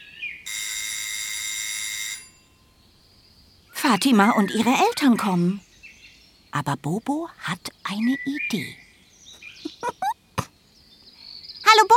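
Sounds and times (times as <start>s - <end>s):
electric doorbell ringing: 0.5s - 2.8s
speech: 3.9s - 5.7s, 6.6s - 8.8s.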